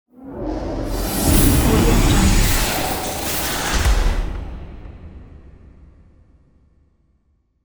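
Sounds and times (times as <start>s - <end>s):
big machine: 0.6s - 5.5s.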